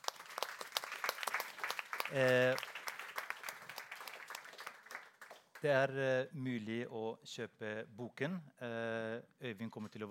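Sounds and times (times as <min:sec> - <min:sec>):
room full of people applauding: 0:00.0 - 0:05.8
speech: 0:02.1 - 0:02.7, 0:05.6 - 0:10.0.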